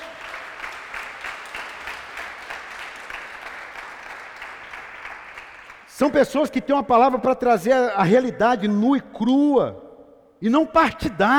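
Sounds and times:
audience applause: 0.0 - 5.9
speech: 6.0 - 9.8, 10.4 - 11.3.

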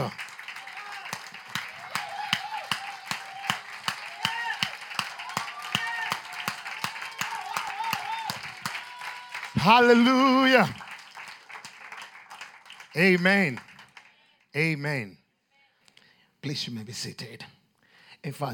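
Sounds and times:
audience clapping in a brisk rhythm: 0.0 - 14.6
speech: 9.6 - 10.8, 13.0 - 13.7, 14.6 - 15.2, 16.4 - 17.5, 18.2 - 18.5.

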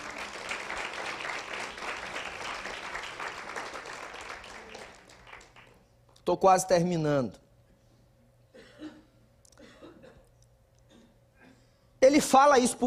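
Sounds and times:
audience applause: 0.0 - 5.8
speech: 6.3 - 7.4, 12.3 - 12.8.

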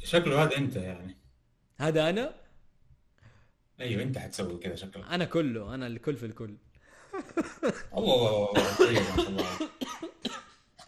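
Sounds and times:
speech: 0.1 - 1.2, 1.8 - 2.4, 3.8 - 10.4
person coughing with hoarse throaty voiced sounds: 8.6 - 10.6.

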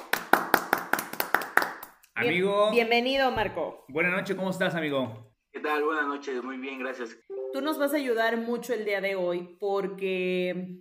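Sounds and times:
audience applause: 0.0 - 1.8
speech: 2.2 - 10.8.

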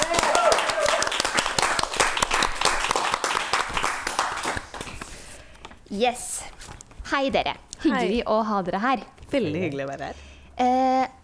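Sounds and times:
crowd applauding: 0.0 - 5.0
speech: 5.9 - 6.4, 7.1 - 11.2.

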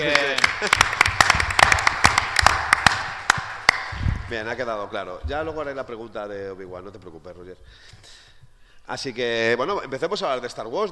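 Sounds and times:
speech: 0.0 - 1.1, 4.3 - 8.2, 8.9 - 10.9
audience applause: 0.0 - 3.9.

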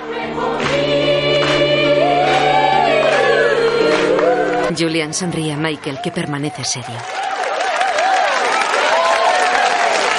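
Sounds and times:
restaurant diners singing: 0.0 - 4.8
restaurant diners clapping along: 0.0 - 4.9, 6.0 - 10.1
speech: 4.8 - 7.3.

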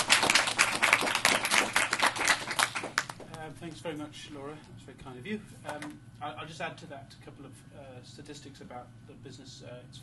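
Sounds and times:
audience applause welcoming a speaker: 0.0 - 3.2
speech: 3.8 - 10.0.

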